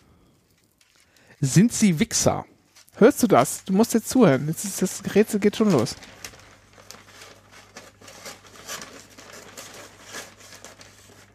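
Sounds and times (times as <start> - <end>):
thin paper being folded: 0.5 - 11.3
speech: 1.4 - 6.2
thin paper being cut: 6.8 - 11.3.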